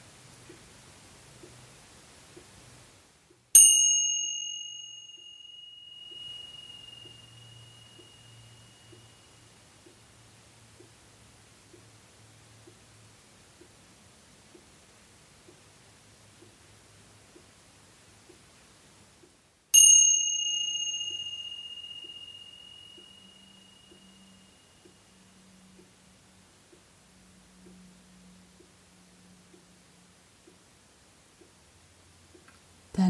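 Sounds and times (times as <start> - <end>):
cymbal ringing: 3.6 - 9.7, 19.7 - 25.9.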